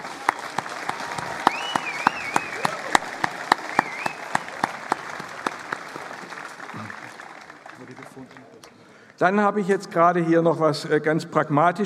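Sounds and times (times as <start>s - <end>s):
audience applauding at a Pentecost Sunday church service: 0.0s - 9.2s
speech: 9.2s - 11.8s.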